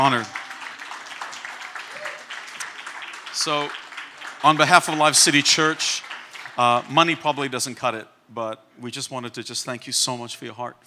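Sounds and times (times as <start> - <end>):
speech: 0.0 - 0.4, 3.4 - 3.8, 4.4 - 10.8
audience applause: 0.0 - 7.5.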